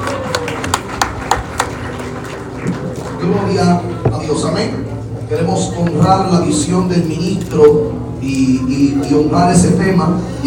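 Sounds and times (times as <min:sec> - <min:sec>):
audience applause: 0:00.0 - 0:03.6
speech: 0:03.3 - 0:10.4.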